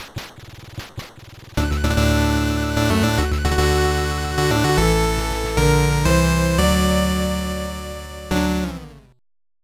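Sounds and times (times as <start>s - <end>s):
music jingle: 1.6s - 9.2s.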